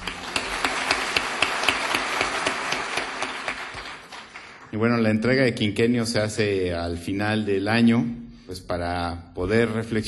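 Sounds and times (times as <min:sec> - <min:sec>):
audience applause: 0:00.0 - 0:04.9
speech: 0:04.8 - 0:10.0.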